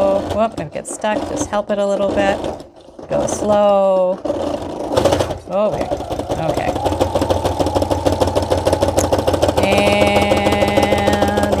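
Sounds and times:
sewing machine back stitching: 0.0s - 11.5s
speech: 0.4s - 4.5s, 5.5s - 6.7s, 9.7s - 10.7s
sustained whining hum: 5.7s - 11.5s.

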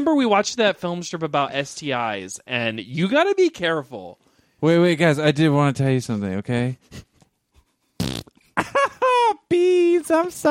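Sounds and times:
speech: 0.0s - 7.1s, 9.5s - 10.4s
loud buzzy fart: 8.0s - 8.4s
laughter: 8.6s - 9.5s.

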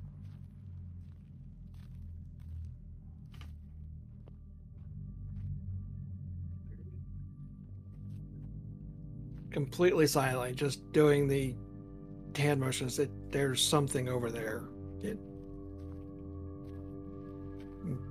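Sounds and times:
shuffling footsteps: 0.0s - 5.6s, 15.3s - 18.1s
heavy low rumble: 0.0s - 18.1s
speech: 9.5s - 11.6s, 12.4s - 15.3s.

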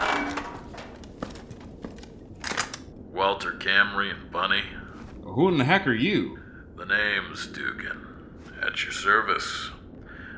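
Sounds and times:
shelter door being opened: 0.0s - 1.2s
speech: 3.2s - 4.8s, 5.4s - 9.8s.

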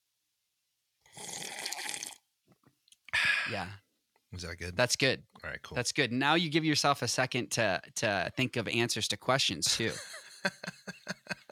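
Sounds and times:
exaggerated slurp of coffee: 1.2s - 2.2s
speech: 3.5s - 10.8s
laughter: 9.7s - 11.5s.

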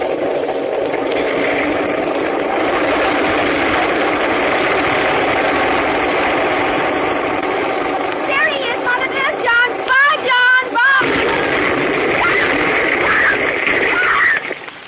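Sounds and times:
airplane engines roaring before takeoff: 0.0s - 14.8s.

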